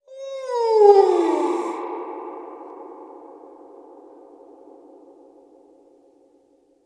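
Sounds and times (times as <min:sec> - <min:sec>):
supernatural ghost crying: 0:00.1 - 0:04.6.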